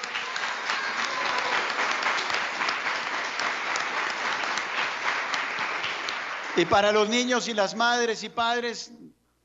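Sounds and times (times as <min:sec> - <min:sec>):
audience applause: 0:00.0 - 0:07.1
speech: 0:06.6 - 0:09.1.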